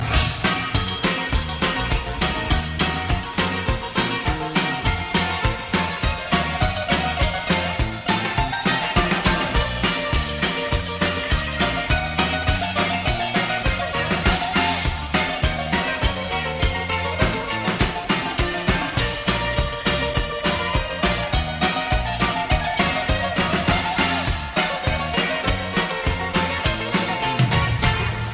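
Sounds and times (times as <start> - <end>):
romantic guitar music: 0.0 - 28.3.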